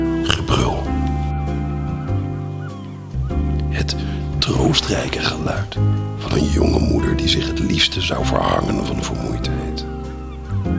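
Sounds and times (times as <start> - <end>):
seagulls screeching: 0.4 - 5.1, 7.4 - 10.7
speech: 3.8 - 9.9.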